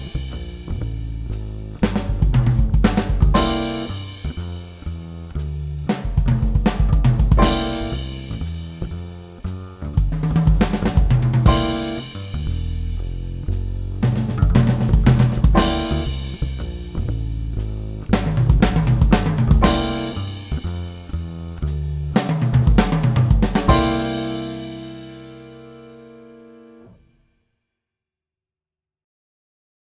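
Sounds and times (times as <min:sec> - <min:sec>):
swing drum fills: 0:00.0 - 0:26.2.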